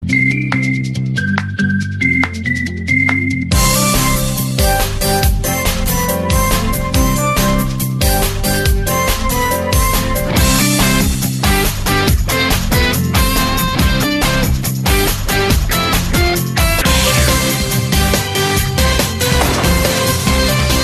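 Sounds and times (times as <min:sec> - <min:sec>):
commercial: 0:00.0 - 0:20.8.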